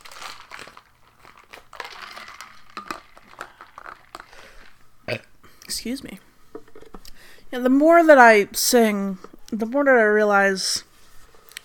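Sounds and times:
person drinking water: 2.1 - 5.6
speech: 5.1 - 6.3, 7.5 - 10.9.

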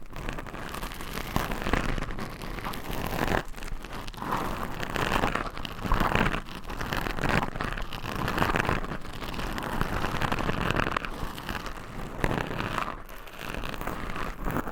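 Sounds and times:
nails scratching microphone covers: 0.2 - 14.7.

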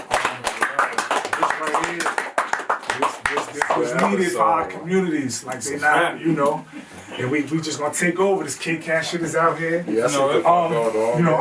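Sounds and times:
people clapping: 0.0 - 4.8
speech: 1.8 - 2.3, 3.5 - 11.3.

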